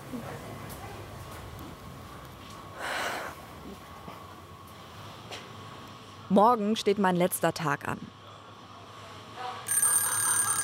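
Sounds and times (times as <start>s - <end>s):
speech: 0.1s - 0.6s, 6.3s - 8.2s
alarm clock ringing: 9.7s - 10.6s.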